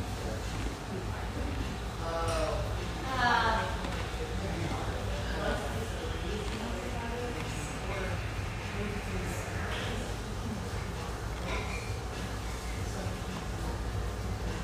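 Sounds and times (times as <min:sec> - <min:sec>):
low constant rumble: 0:00.0 - 0:14.6
murmur of voices in an espresso house near the Vancouver riverfront: 0:00.0 - 0:14.6.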